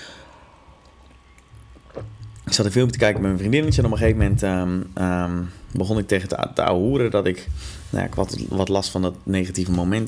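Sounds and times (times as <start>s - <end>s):
person sipping coffee: 0.3s - 2.5s
speech: 2.0s - 10.0s.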